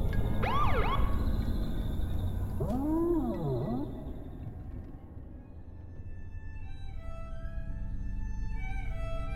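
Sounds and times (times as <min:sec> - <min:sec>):
low rumbling hum: 0:00.0 - 0:09.3
police car siren during traffic stop: 0:00.4 - 0:01.3, 0:02.6 - 0:04.5.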